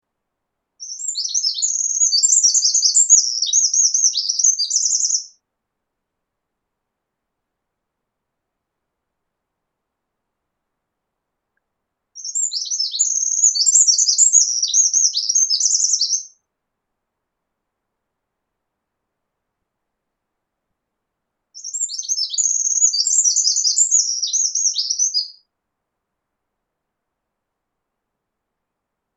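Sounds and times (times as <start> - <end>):
Eurasian wren singing: 0.8 - 5.4, 12.2 - 16.4, 21.6 - 25.4.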